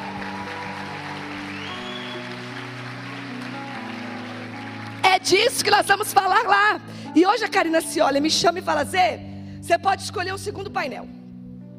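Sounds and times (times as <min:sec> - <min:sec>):
audience clapping: 0:00.0 - 0:05.8
speech: 0:05.2 - 0:11.2.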